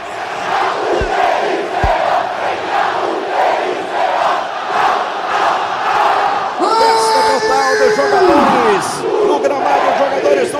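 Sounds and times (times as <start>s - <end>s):
stadium crowd of football fans roaring and chanting: 0.0s - 10.5s
low thumps: 0.8s - 2.4s.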